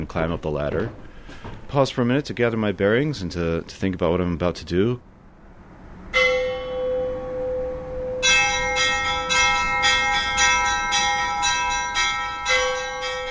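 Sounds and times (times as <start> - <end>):
speech: 0.0 - 5.1
large church bells rung by hand in a tower: 6.1 - 13.2.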